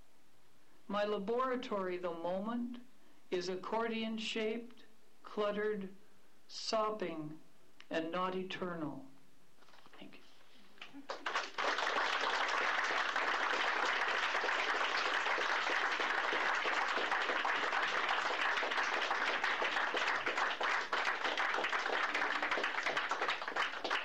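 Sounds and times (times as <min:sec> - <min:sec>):
speech: 0:00.9 - 0:09.1
audience applause after a reading: 0:11.0 - 0:24.0.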